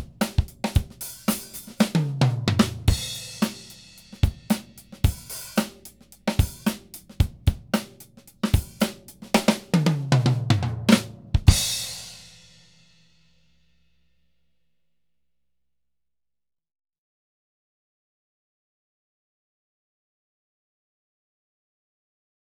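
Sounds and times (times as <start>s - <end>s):
whole drum kit playing instrumental: 0.0s - 12.8s.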